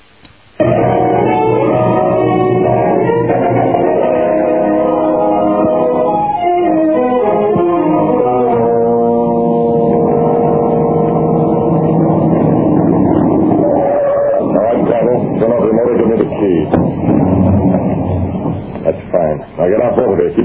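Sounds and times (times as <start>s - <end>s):
car engine droning: 0.7s - 19.5s
voices: 10.7s - 20.4s.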